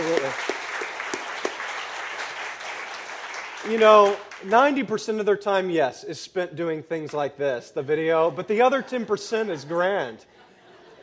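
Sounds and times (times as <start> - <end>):
audience applause to thank the staff: 0.0 - 4.6
speech: 3.6 - 10.4
laughter: 7.8 - 11.0.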